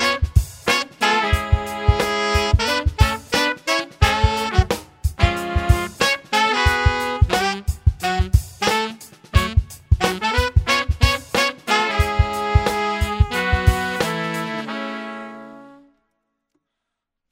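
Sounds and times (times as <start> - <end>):
hot horns playing: 0.0 - 16.0.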